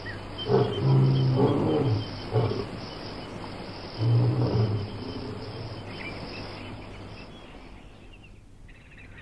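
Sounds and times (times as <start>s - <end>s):
hissing background: 0.0s - 8.2s
lion grunting: 0.3s - 6.6s.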